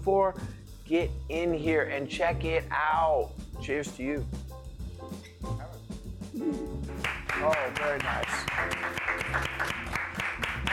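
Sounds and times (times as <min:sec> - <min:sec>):
speech: 0:00.0 - 0:04.4, 0:06.4 - 0:10.0
slow clap: 0:07.0 - 0:10.7.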